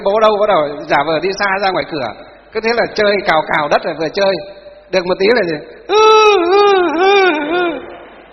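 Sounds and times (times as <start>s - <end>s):
speech: 0.0s - 7.9s
voice imitating a child's loud wailing cry: 5.9s - 8.0s.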